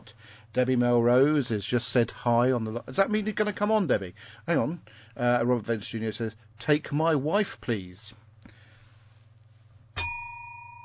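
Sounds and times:
speech: 0.1 - 8.2
bell ringing: 10.0 - 10.8.

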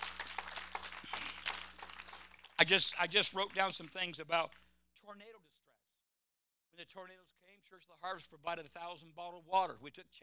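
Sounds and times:
audience clapping hands in praise: 0.0 - 4.6
speech: 2.7 - 5.6, 6.8 - 10.2.

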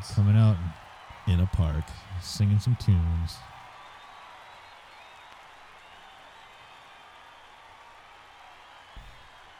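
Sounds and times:
speech: 0.0 - 3.5
crowd clapping in a park: 0.0 - 9.5.

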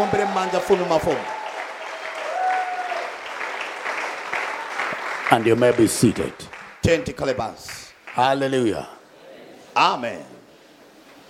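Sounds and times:
speech: 0.0 - 1.4, 5.3 - 9.0, 9.8 - 10.3
audience clapping hands: 0.0 - 8.6.

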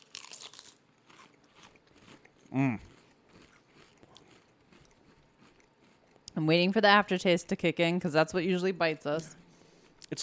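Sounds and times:
potato chips with a spicy, Old Bay-like seasoning crunching: 0.0 - 6.0
speech: 2.5 - 2.9, 6.4 - 9.4.

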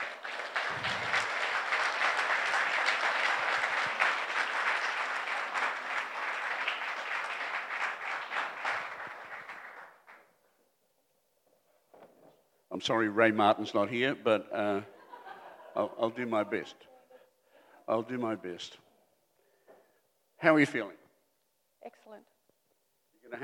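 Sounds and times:
church congregation applauding: 0.0 - 10.4
speech: 12.8 - 15.0, 15.8 - 16.9, 17.9 - 18.8, 20.4 - 21.0
laughter: 14.6 - 16.7.

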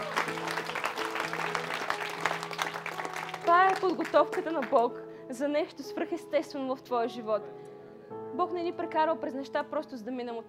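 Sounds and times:
crowd clapping: 0.0 - 4.9
speech: 3.8 - 7.7, 8.4 - 10.4.

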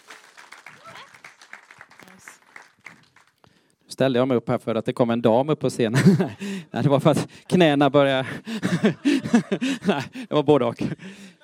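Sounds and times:
stage show audience scattered applause: 0.0 - 3.6
speech: 4.0 - 11.3
laughter: 5.9 - 6.9, 8.2 - 11.4.

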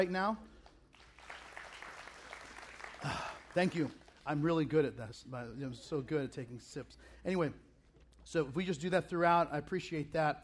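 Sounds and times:
speech: 0.0 - 0.5, 3.0 - 7.6, 8.2 - 10.4
audience clapping: 0.6 - 4.7.

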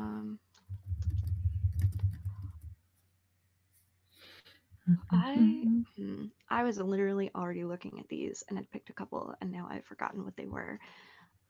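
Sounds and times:
fast typing on a computer keyboard: 0.6 - 2.7
speech: 4.9 - 11.2.

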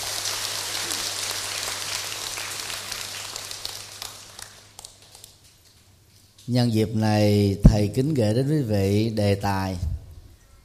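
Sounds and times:
big round of applause: 0.0 - 5.5
speech: 6.5 - 9.9.

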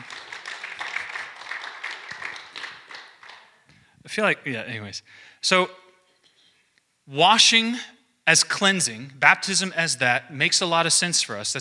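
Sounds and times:
audience applause: 0.0 - 3.6
speech: 4.1 - 5.8, 7.1 - 11.5.

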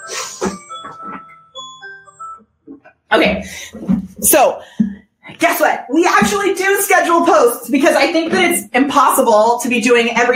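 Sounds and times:
phone alarm ringing: 0.0 - 2.6
speech: 3.1 - 4.8, 5.4 - 10.3.

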